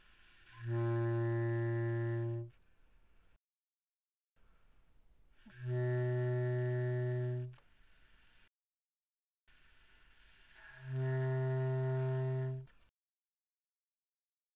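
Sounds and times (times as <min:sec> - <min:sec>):
bass clarinet playing pianissimo low notes: 0:00.5 - 0:02.6, 0:05.5 - 0:07.6, 0:10.6 - 0:12.8.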